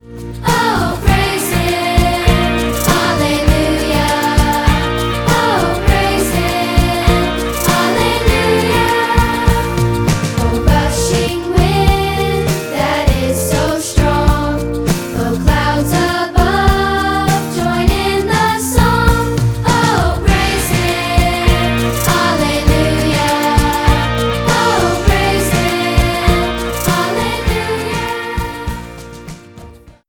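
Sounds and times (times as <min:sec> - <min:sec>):
musical instruments playing: 0:00.0 - 0:29.9.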